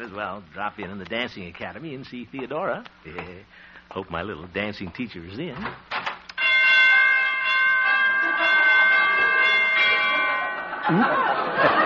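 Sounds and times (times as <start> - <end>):
speech: 0.0 - 6.0, 10.9 - 11.8
door chimes ringing out of tune: 6.4 - 11.0
laughter: 10.0 - 11.8.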